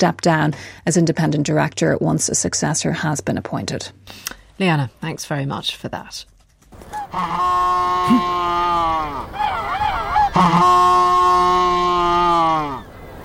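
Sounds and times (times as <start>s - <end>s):
speech: 0.0s - 6.3s, 6.9s - 9.4s, 10.4s - 10.8s
Humboldt penguins braying: 6.8s - 12.9s.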